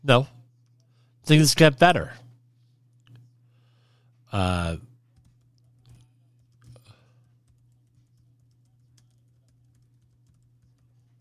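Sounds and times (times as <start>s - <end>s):
speech: 0.0s - 0.4s, 1.3s - 2.2s, 4.3s - 4.9s
steady electrical hum: 0.0s - 11.1s
faint keystrokes on a computer keyboard: 5.1s - 6.8s, 7.4s - 11.1s.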